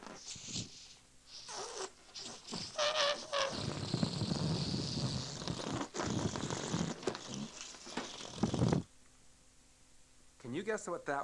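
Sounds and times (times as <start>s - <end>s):
released balloon flying around: 0.0s - 8.9s
speech: 10.6s - 11.2s.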